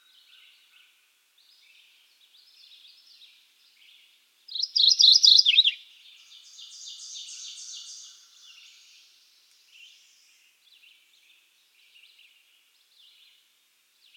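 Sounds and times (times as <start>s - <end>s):
Mourning Warbler Geothlypis philadelphia song: 0.0s - 14.1s.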